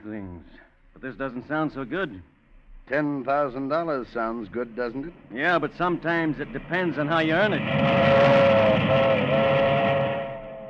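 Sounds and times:
speech: 0.0 - 9.7
passing milk train: 5.7 - 10.6.

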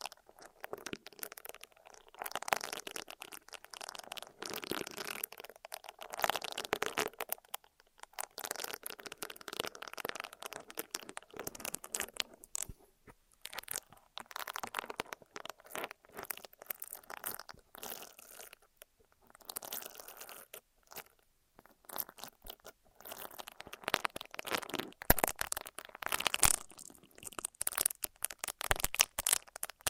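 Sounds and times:
ear massage and cleaning crackly rubbing and crunching: 0.0 - 29.8.

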